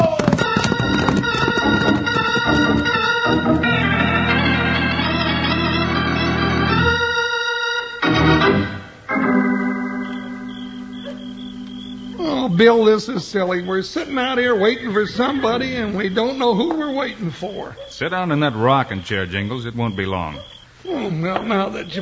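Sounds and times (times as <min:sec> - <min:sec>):
horses galloping with pounding hoofbeats: 0:00.0 - 0:04.9, 0:12.2 - 0:20.6
loud sustained orchestral music: 0:01.2 - 0:11.0
speech: 0:12.6 - 0:22.0.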